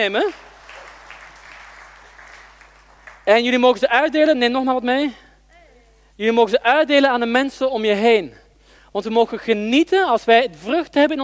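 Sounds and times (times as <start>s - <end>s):
speech: 0.0s - 0.5s, 3.2s - 5.2s, 6.2s - 11.2s
faint applause from a small audience at a faith gathering: 0.0s - 3.5s
low electrical hum: 0.0s - 11.2s.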